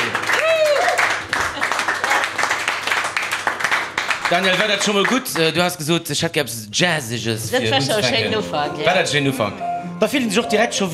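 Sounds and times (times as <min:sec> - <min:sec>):
audience applause: 0:00.0 - 0:05.8
speech: 0:04.3 - 0:10.9.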